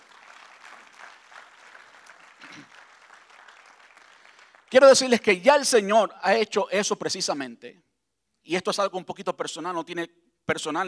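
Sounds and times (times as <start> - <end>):
audience applause: 0.0 - 5.0
speech: 4.7 - 7.9, 8.5 - 10.8.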